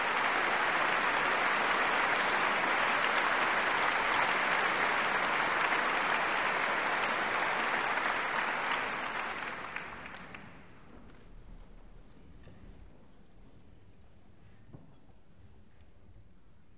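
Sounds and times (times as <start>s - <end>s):
applause: 0.0s - 10.8s.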